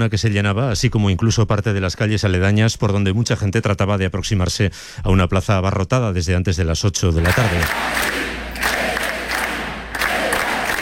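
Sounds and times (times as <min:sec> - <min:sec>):
speech: 0:00.0 - 0:08.2
crowd chanting slogans at a rally: 0:07.2 - 0:10.8.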